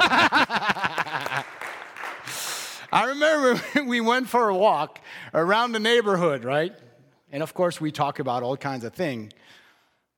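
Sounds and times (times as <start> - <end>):
laughter: 0.0 - 1.8
audience applause: 0.0 - 2.9
speech: 3.2 - 9.6.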